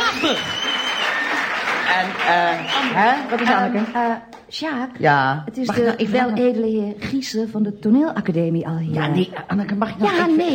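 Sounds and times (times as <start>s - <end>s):
applause: 0.0s - 4.5s
speech: 0.3s - 0.6s, 1.9s - 10.5s.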